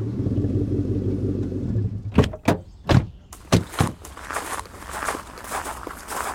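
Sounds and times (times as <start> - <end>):
low car engine rumble: 0.0 - 6.3
faint shuffling steps: 3.3 - 6.3
footsteps of people walking outdoors at night near an allotment garden: 3.3 - 6.3.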